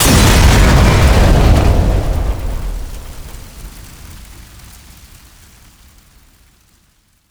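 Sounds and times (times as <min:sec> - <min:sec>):
explosion: 0:00.0 - 0:04.7.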